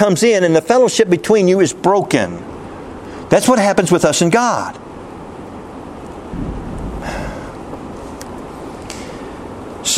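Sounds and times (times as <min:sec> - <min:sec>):
speech: 0:00.0 - 0:02.5, 0:03.3 - 0:04.8
heavy rain: 0:06.3 - 0:09.4.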